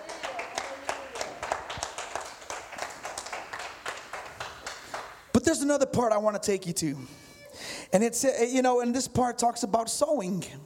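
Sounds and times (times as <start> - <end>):
audience applause: 0.0 - 5.2
speech: 5.4 - 10.6.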